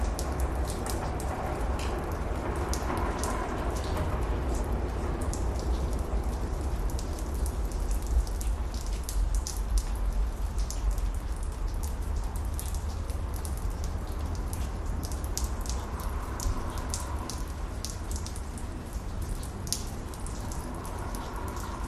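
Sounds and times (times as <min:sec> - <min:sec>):
distant train passing by in a city: 0:00.0 - 0:07.5
raindrops splashing on a pebble street in a city: 0:00.0 - 0:21.8.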